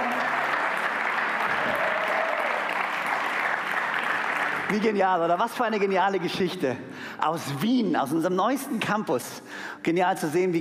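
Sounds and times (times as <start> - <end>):
audience applause: 0.0 - 5.6
speech: 4.7 - 10.5.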